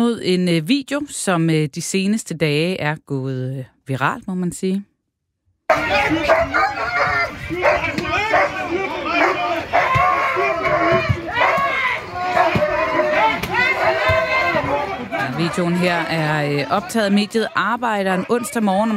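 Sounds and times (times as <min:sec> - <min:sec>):
speech: 0:00.0 - 0:04.9, 0:05.7 - 0:06.8, 0:15.4 - 0:18.9
dogs barking: 0:05.7 - 0:14.5, 0:17.9 - 0:18.9
people shouting and calling out: 0:05.7 - 0:18.9.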